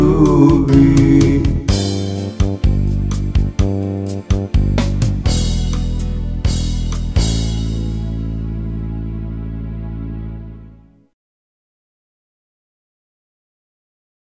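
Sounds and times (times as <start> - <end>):
starogradske folk music: 0.0 - 11.0.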